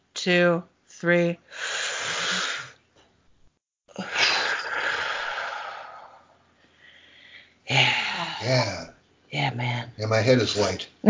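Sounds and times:
speech: 0.2 - 1.8, 9.5 - 11.0
group taking a deep breath together: 1.5 - 2.8, 4.0 - 8.4.

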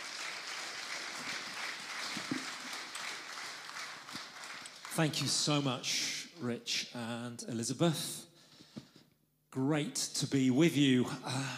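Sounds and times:
faint congregation applause greeting a speaker: 0.0 - 6.2
speech: 5.0 - 8.2, 9.6 - 11.5.

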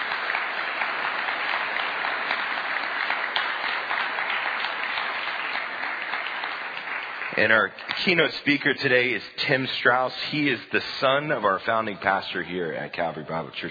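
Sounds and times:
audience applause: 0.0 - 9.0
speech: 7.4 - 13.6.

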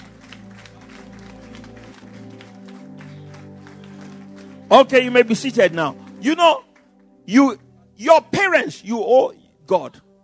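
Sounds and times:
audience applause: 0.0 - 6.9
organ or keyboard chords: 0.0 - 10.2
speech: 4.7 - 6.7, 7.3 - 10.0.

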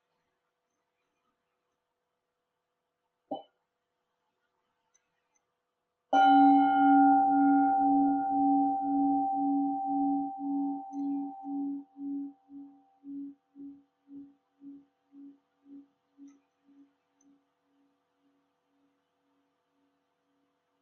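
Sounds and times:
meditation bell ringing: 6.2 - 14.8.

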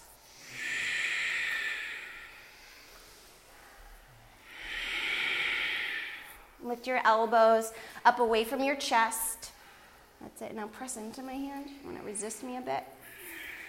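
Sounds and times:
ujjayi breathing through a constricted throat: 0.0 - 6.6, 13.0 - 13.6
speech: 6.6 - 9.4, 10.4 - 13.0.

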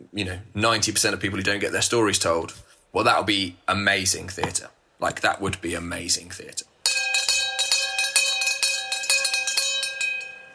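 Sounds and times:
speech: 0.1 - 6.7
theatre interval bell ringing: 6.9 - 10.5.

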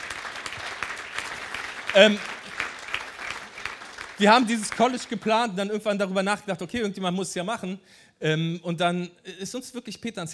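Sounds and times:
audience applause: 0.0 - 5.4
speech: 2.0 - 2.3, 4.2 - 10.3.

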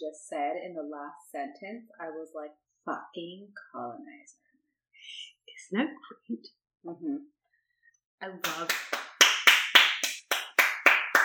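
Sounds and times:
speech: 0.0 - 4.4, 5.0 - 7.4, 8.2 - 9.0
round of applause: 8.4 - 11.2.

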